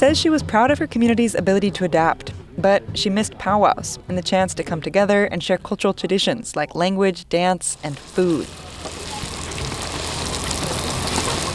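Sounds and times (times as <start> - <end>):
speech: 0.0 - 9.0
fresh fry bread sizzling in pans of cooking oil: 7.8 - 11.5.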